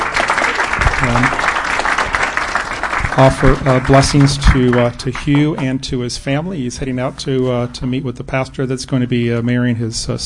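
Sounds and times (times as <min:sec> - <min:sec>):
church congregation applauding on Pastor Appreciation Day: 0:00.0 - 0:05.8
speech: 0:01.1 - 0:01.5, 0:03.2 - 0:10.2.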